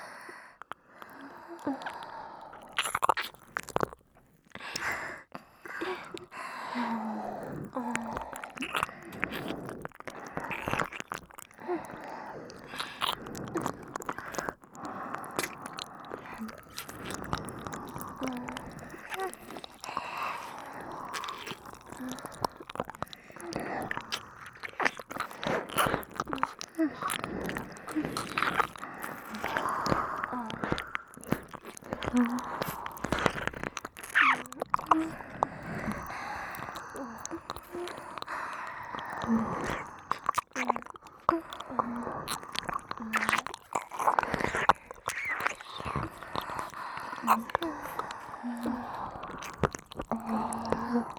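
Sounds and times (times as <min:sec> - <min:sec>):
kissing and licking sounds in both ears: 0:00.6 - 0:51.1.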